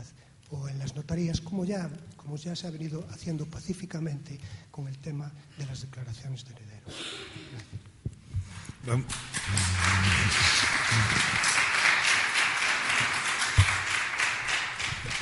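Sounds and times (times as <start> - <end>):
speech: 0.8 - 7.8, 8.8 - 11.6
audience applause: 9.1 - 15.2
faint murmuring voices: 9.4 - 11.6.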